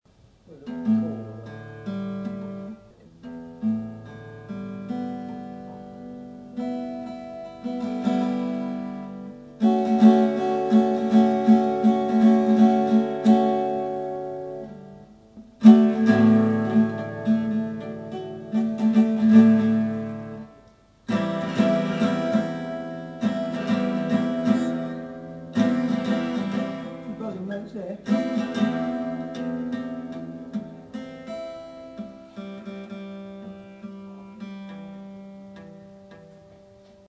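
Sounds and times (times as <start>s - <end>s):
guitar: 0.0s - 37.0s.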